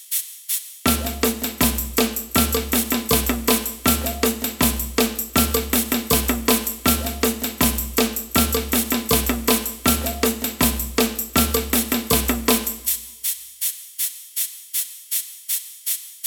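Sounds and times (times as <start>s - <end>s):
ganza shaker in samba band: 0.0s - 16.2s
samba band playing: 0.9s - 13.0s.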